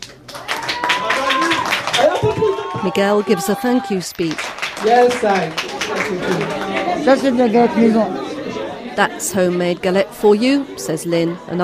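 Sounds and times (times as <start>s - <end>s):
group clapping at a New Year galette celebration with rough sleepers: 0.0s - 8.6s
speech: 2.8s - 8.2s, 9.0s - 11.6s.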